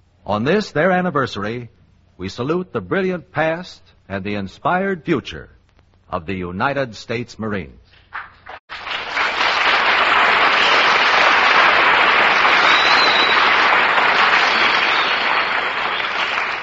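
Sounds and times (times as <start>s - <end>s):
speech: 0.2s - 8.3s
studio audience applause: 8.7s - 16.6s.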